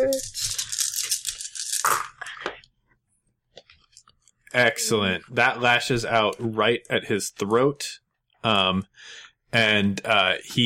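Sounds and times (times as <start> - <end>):
dice rolling: 0.1 - 2.3
speech: 4.6 - 10.6.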